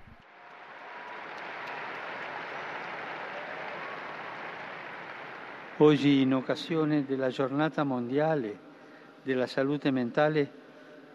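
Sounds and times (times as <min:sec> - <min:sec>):
large crowd applause welcoming new blesseds: 0:00.0 - 0:07.0
speech: 0:05.8 - 0:10.6.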